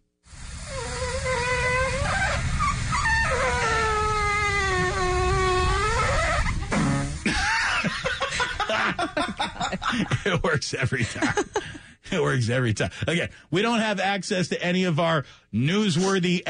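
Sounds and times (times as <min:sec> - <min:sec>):
waffle machine making a farting noise: 0:00.4 - 0:08.0
laughter: 0:07.2 - 0:11.9
speech: 0:09.9 - 0:16.4.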